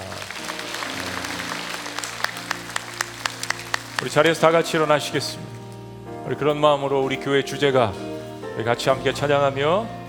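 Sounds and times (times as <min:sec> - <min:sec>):
audience applause: 0:00.0 - 0:04.9
speech: 0:04.0 - 0:05.5, 0:06.3 - 0:10.0.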